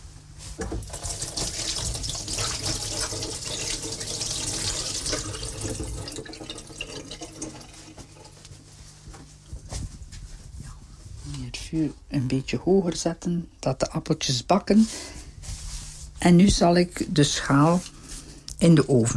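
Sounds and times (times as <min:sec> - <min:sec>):
running tap water, washing hands: 0:00.7 - 0:08.4
speech: 0:11.7 - 0:15.1, 0:16.2 - 0:17.9, 0:18.6 - 0:19.1.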